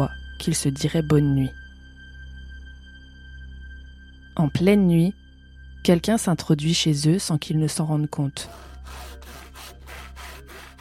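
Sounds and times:
speech: 0:00.0 - 0:01.6, 0:04.4 - 0:05.2, 0:05.8 - 0:09.4
hand saw cutting through a wooden door: 0:08.4 - 0:10.7.

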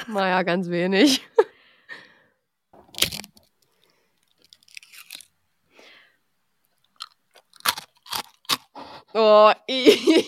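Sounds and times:
speech: 0:00.0 - 0:01.4, 0:09.2 - 0:10.2
person chewing cheese crunchily: 0:02.9 - 0:05.3, 0:06.7 - 0:08.9.

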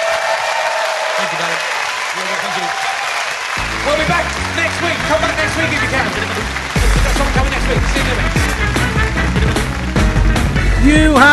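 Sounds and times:
audience applause: 0:00.0 - 0:10.7
speech: 0:01.3 - 0:03.0, 0:03.6 - 0:09.6, 0:10.8 - 0:11.3.

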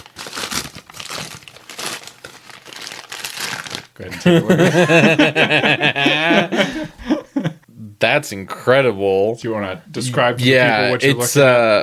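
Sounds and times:
gift wrapping crinkling as a tightly packed gift is torn open: 0:00.0 - 0:04.0
speech: 0:04.0 - 0:07.1, 0:08.0 - 0:11.8
laughter: 0:04.1 - 0:07.6.

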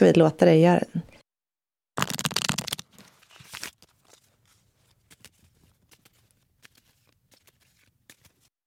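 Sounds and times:
speech: 0:00.0 - 0:01.1
tarot cards being shuffled: 0:02.0 - 0:08.5.

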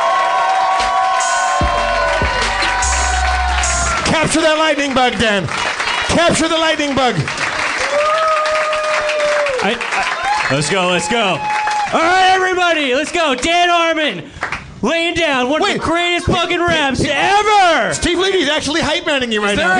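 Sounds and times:
audience cheering and applauding: 0:00.0 - 0:12.6
speech: 0:04.2 - 0:08.2, 0:09.6 - 0:19.7.

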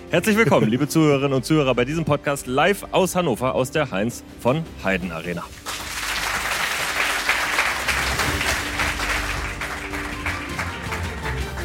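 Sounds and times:
speech: 0:00.1 - 0:05.8
laughter: 0:00.2 - 0:01.0
live audience applauding in a stadium: 0:05.5 - 0:11.6.

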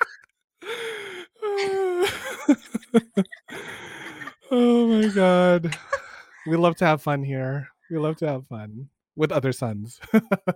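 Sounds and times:
person wheezing in a coughing fit: 0:00.0 - 0:02.5, 0:03.5 - 0:06.4
person coughing in a coughing fit: 0:01.5 - 0:02.6, 0:03.2 - 0:06.2
laughter: 0:01.9 - 0:06.6, 0:10.0 - 0:10.5
speech: 0:04.6 - 0:10.5.

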